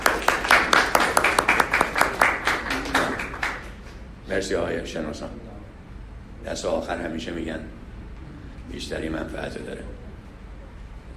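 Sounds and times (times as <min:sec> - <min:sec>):
audience clapping for team number one in a group workshop: 0:00.0 - 0:04.1
speech: 0:04.4 - 0:05.5, 0:06.4 - 0:07.8, 0:08.7 - 0:10.0.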